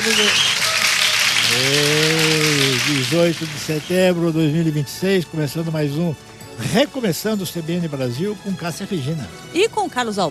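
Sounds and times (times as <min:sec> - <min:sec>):
speech: 0:00.0 - 0:00.6, 0:01.5 - 0:02.2, 0:02.9 - 0:10.2
applause: 0:00.0 - 0:04.0.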